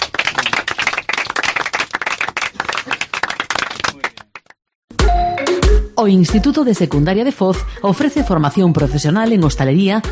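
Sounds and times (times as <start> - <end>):
crowd applauding: 0.0 - 4.6
speech: 6.0 - 10.1.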